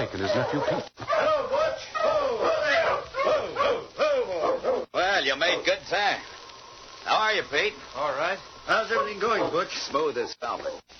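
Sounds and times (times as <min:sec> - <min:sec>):
speech: 0:00.0 - 0:01.2, 0:05.4 - 0:06.4, 0:07.0 - 0:10.9
sled dogs barking: 0:00.0 - 0:05.8, 0:08.7 - 0:10.8.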